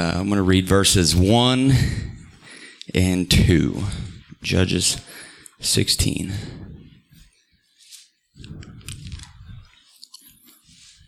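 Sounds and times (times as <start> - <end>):
speech: 0.0 - 2.1, 2.9 - 6.6
cough drop wet clicking, sucking and crunching mouth noises: 8.4 - 11.0.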